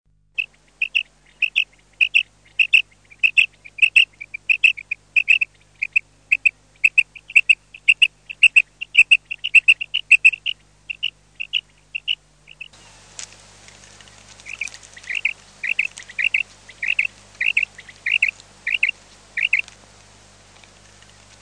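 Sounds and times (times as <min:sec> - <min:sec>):
common quail calling: 0:00.4 - 0:13.0, 0:13.6 - 0:21.4.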